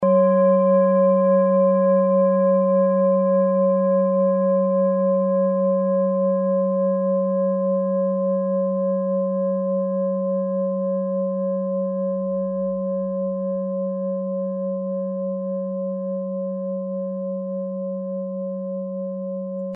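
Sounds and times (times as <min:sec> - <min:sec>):
singing bowl from Ladakh: 0:00.0 - 0:19.7.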